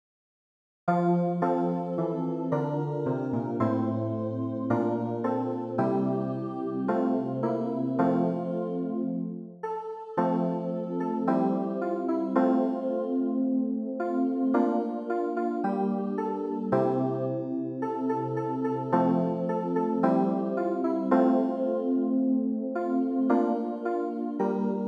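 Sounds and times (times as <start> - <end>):
keyboard: 0.9 - 24.8.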